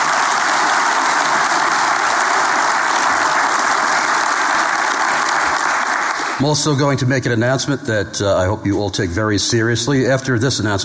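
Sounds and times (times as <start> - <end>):
round of applause: 0.0 - 6.8
speech: 6.4 - 10.8.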